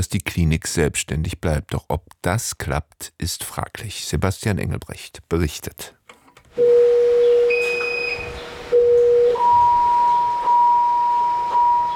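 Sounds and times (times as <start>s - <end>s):
speech: 0.0s - 6.0s
patient monitoring station alarm beeping: 6.6s - 11.9s.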